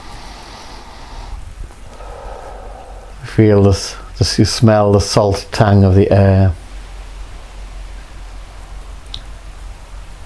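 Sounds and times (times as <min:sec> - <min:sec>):
sea waves rushing: 0:00.0 - 0:04.2
speech: 0:03.3 - 0:06.6.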